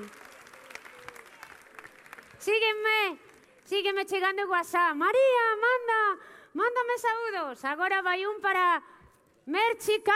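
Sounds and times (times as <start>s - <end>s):
audience applause: 0.0s - 3.7s
speech: 2.4s - 10.1s.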